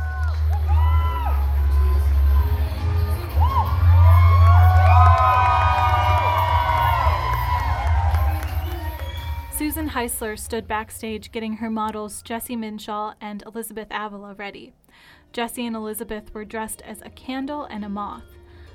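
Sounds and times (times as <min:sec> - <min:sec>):
high whoops: 0:00.0 - 0:01.7, 0:03.2 - 0:09.6
audience cheering and hollering: 0:00.0 - 0:09.9
speech: 0:10.0 - 0:18.4.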